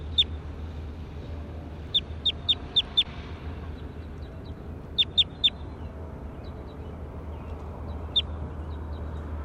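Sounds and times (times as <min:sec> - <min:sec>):
bird calling: 0:00.0 - 0:00.4, 0:01.9 - 0:03.1, 0:03.8 - 0:09.3.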